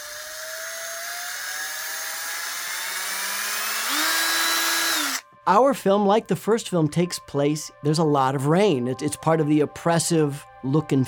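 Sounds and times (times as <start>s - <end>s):
electric power tool whirring: 0.0s - 5.3s
speech: 5.5s - 11.0s.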